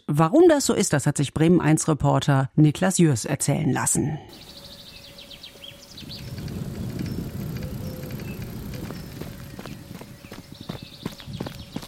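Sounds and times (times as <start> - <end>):
speech: 0.1 - 4.6
bicycles passing on dike: 4.3 - 11.8
birds chirping: 4.3 - 11.8.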